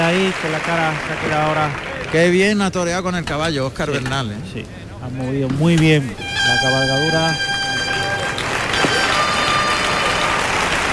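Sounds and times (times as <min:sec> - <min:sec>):
bullring crowd ovation and applause for the picador: 0:00.0 - 0:02.4, 0:07.7 - 0:10.9
speech: 0:00.0 - 0:07.6.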